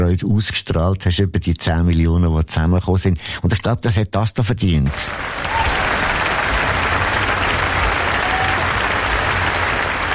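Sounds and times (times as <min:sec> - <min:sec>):
speech: 0:00.1 - 0:05.9
audience applause: 0:04.9 - 0:10.1.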